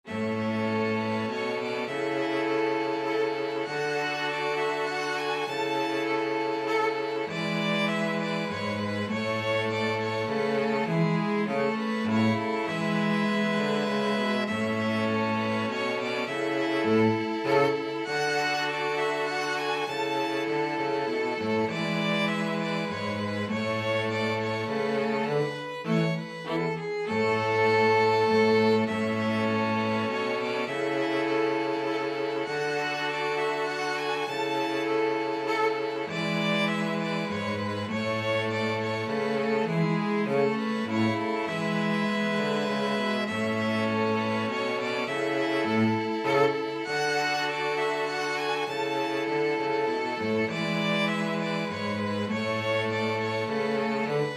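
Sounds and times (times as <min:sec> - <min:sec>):
string quartet playing a minuet: 0:00.0 - 0:54.3.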